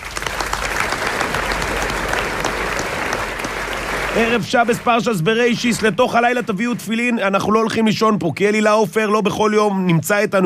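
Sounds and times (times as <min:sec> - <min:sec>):
audience applause: 0:00.0 - 0:07.6
speech: 0:04.2 - 0:10.4.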